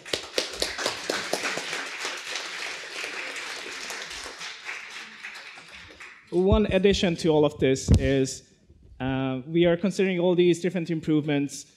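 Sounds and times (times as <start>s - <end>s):
audience applause: 0.0s - 6.6s
speech: 6.3s - 11.7s.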